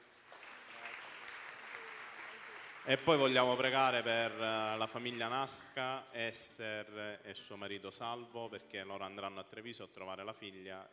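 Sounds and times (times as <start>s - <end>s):
audience applause: 0.0s - 3.8s
speech: 2.8s - 10.9s.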